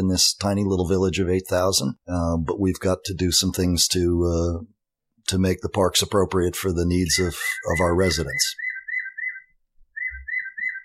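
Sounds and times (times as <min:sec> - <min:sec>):
speech: 0:00.0 - 0:08.6
Audubon bird-call clock chirping the hour: 0:07.0 - 0:10.8.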